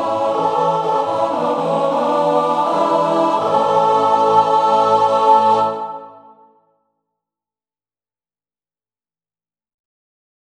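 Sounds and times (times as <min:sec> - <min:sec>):
male choir singing in three parts: 0:00.0 - 0:06.6.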